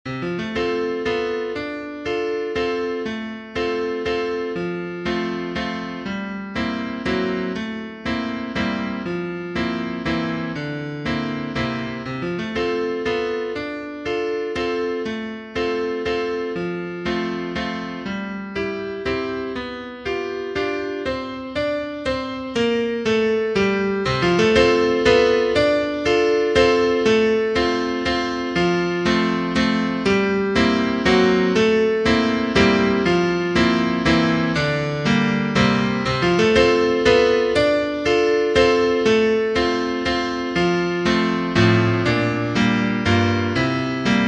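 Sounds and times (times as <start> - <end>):
piano: 0.0 - 44.2.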